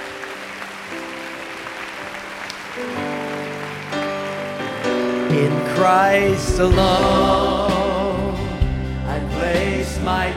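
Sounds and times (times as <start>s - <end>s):
audience clapping: 0.0s - 6.8s
sustained keyboard chords: 0.0s - 10.3s
speech: 2.8s - 3.0s, 5.4s - 7.6s.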